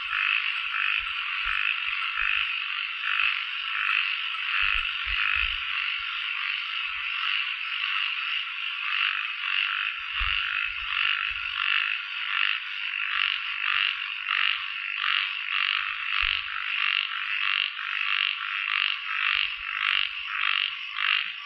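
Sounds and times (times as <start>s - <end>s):
frogs croaking: 0.0s - 21.4s.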